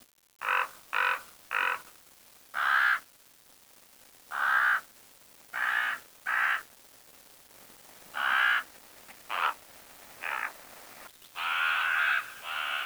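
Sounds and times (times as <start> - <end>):
bird cawing harshly: 2.6 - 3.0, 4.3 - 4.8, 5.6 - 6.6, 8.2 - 8.7, 9.3 - 9.6, 10.2 - 10.6, 11.4 - 12.8.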